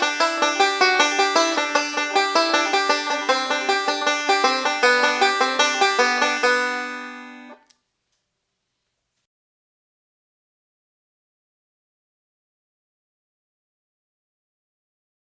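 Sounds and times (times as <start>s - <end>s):
melody rolls on the 2nd string: 0.0s - 7.6s.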